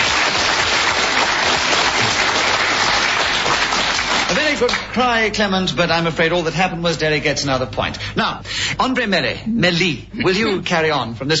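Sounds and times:
audience applause: 0.0 - 5.0
speech: 4.6 - 11.3.

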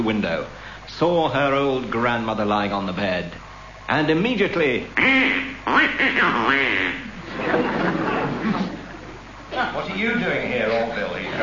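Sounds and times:
speech: 0.0 - 8.0, 9.6 - 11.4
duck quacking: 5.0 - 7.2
laughter: 6.5 - 11.4.

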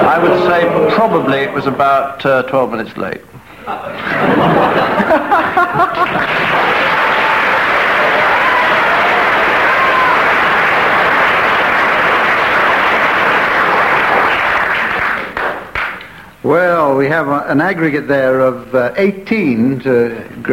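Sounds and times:
audience laughter: 0.0 - 1.8, 3.6 - 7.4
speech: 0.1 - 7.2, 16.4 - 20.5
studio audience applause: 4.1 - 16.2.

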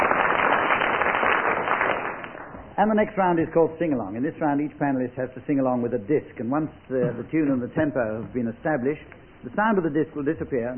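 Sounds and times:
audience applause: 0.0 - 2.6
speech: 2.8 - 10.7.

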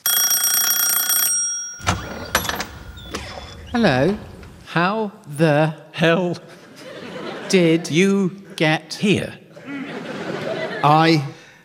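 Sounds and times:
electric doorbell buzzing: 0.0 - 3.2
sharp clunks: 1.8 - 4.6
speech: 3.7 - 6.6, 7.5 - 9.4, 10.8 - 11.3
laughter: 6.4 - 11.3.

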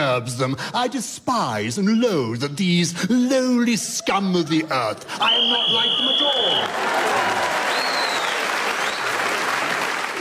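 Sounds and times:
speech: 0.2 - 7.5
audience applause: 5.2 - 10.1.

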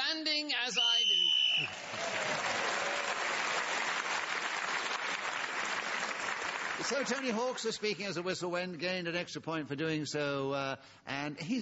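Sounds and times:
speech: 0.2 - 0.9, 6.9 - 11.6
studio audience clapping: 1.3 - 7.9.

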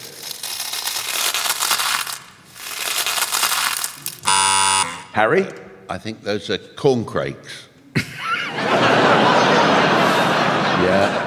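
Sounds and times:
frosted cereal flakes crunching: 0.0 - 4.3
speech: 5.2 - 7.7
laughter: 7.9 - 11.2.

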